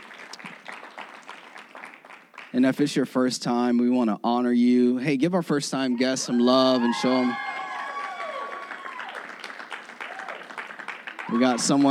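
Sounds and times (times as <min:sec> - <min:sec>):
audience hand clapping: 0:00.0 - 0:02.9, 0:07.4 - 0:11.9
speech: 0:02.5 - 0:07.5, 0:11.3 - 0:11.9.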